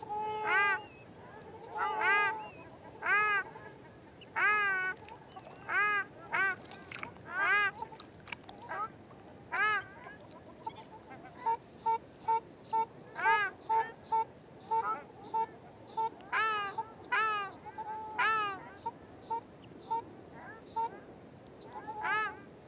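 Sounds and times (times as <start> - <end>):
ruddy shelduck giving nasal goose-like honks: 0.0 - 0.9, 1.6 - 5.0, 5.6 - 7.9, 9.5 - 9.9, 10.6 - 21.0, 21.7 - 22.4.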